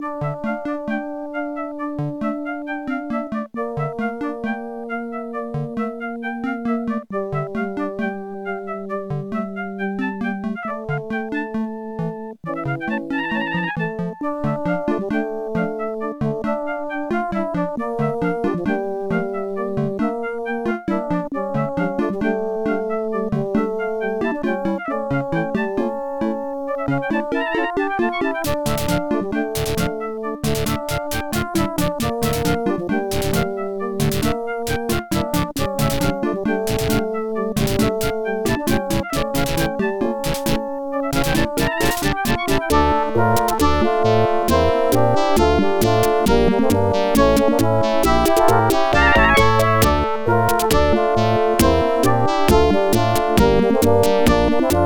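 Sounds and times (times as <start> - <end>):
OPL3 FM synthesizer music: 0.0 - 54.8.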